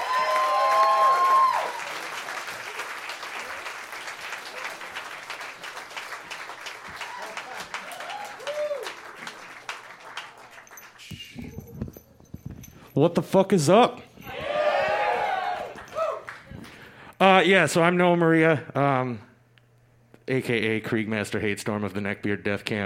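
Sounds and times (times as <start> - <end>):
audience applause: 0.0 - 11.0, 14.5 - 16.5
speech: 13.0 - 14.0, 17.4 - 19.3, 20.3 - 22.8.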